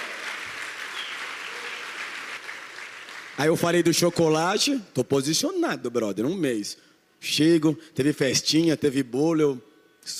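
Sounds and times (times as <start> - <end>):
audience applause: 0.0 - 4.0
speech: 3.4 - 10.1.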